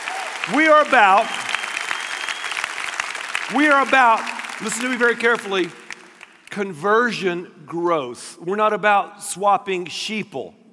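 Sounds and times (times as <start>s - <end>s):
loud rising cheers and whoops: 0.0s - 3.1s
crowd applause: 0.0s - 6.5s
speech: 0.5s - 1.4s, 3.5s - 5.8s, 6.5s - 10.7s.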